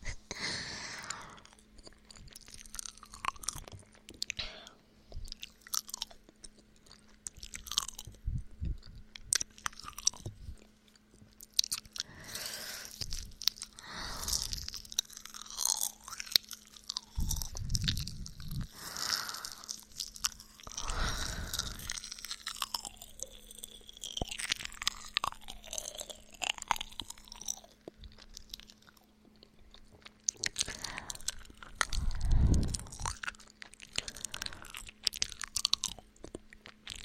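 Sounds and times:
crunchy chewing of homemade pastries: 1.0 - 37.0.

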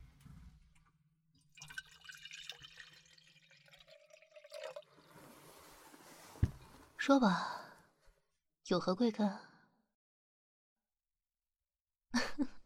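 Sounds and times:
water pouring into a cup: 1.4 - 5.6
speech: 7.1 - 7.6, 8.7 - 9.5.

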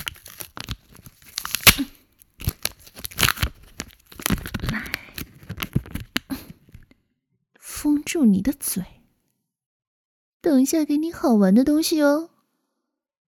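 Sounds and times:
adhesive tape pulled off a roll and torn: 0.0 - 5.2
speech: 8.1 - 9.0, 10.4 - 12.3.

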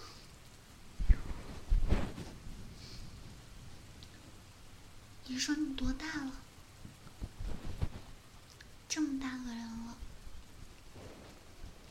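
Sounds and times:
heavy rain hissing: 0.0 - 11.8
speech: 5.3 - 6.4, 9.0 - 9.8.

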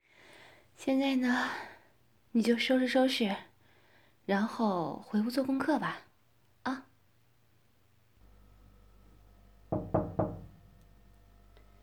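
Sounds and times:
speech: 0.8 - 1.7, 2.3 - 3.5, 4.3 - 6.9
low steady hum: 8.2 - 11.8
knocking on a bedroom door: 9.7 - 10.6.

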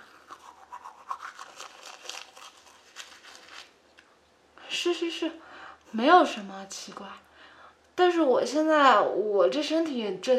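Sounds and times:
teeth being brushed with a toothbrush: 0.0 - 3.7
speech: 4.8 - 7.3, 8.0 - 10.3.

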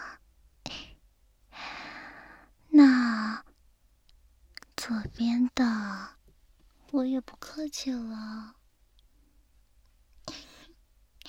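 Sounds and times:
rapid heavy breathing: 0.7 - 2.6
speech: 4.9 - 6.2, 6.9 - 8.6.

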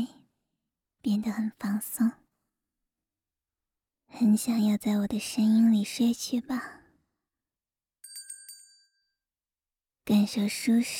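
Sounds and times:
speech: 1.0 - 2.2, 4.1 - 6.8, 10.1 - 10.9
small bell ringing: 8.0 - 9.2.

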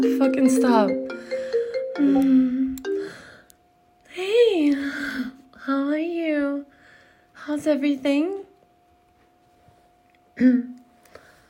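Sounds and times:
speech: 0.0 - 1.3, 2.0 - 2.9, 4.2 - 6.7, 7.4 - 8.4, 10.4 - 10.8
mobile phone ringing with a melodic ringtone: 0.0 - 3.3.

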